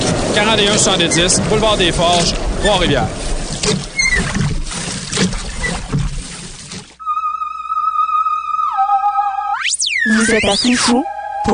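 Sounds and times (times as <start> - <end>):
oars rowing and splashing in water: 0.0 - 7.0
speech: 0.4 - 4.4, 10.2 - 11.5
steady buzzy electronic tone sliding down in pitch: 7.0 - 11.5.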